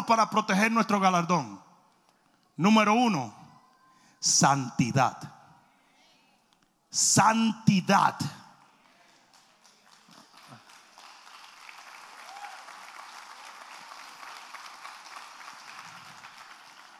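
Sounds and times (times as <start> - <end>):
speech: 0.1 - 1.6, 2.6 - 3.4, 4.2 - 5.4, 6.9 - 8.4
audience applause: 8.8 - 16.9.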